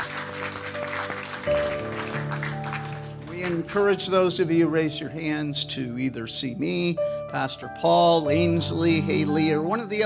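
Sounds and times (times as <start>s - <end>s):
audience clapping: 0.0s - 4.1s
speech: 3.5s - 10.0s.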